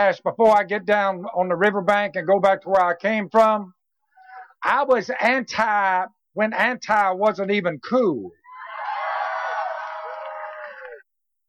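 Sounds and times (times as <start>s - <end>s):
speech: 0.0s - 3.8s, 4.6s - 8.4s
crowd cheering: 8.4s - 11.1s.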